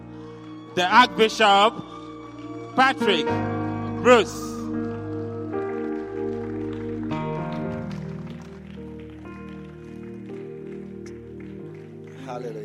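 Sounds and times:
audience applauding: 0:00.0 - 0:12.6
speech: 0:00.8 - 0:02.0, 0:02.8 - 0:04.5, 0:12.4 - 0:12.6.

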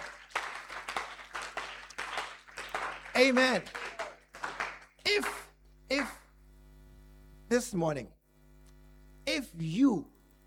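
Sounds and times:
church congregation clapping half-heartedly during a sermon: 0:00.0 - 0:06.2
speech: 0:03.2 - 0:03.8, 0:05.1 - 0:06.2, 0:07.5 - 0:08.2, 0:09.4 - 0:10.1.

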